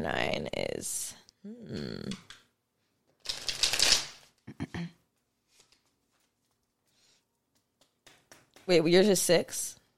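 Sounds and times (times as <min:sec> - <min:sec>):
speech: 0:00.0 - 0:02.2, 0:08.7 - 0:09.8
tarot cards shuffled for a reading: 0:03.2 - 0:04.3.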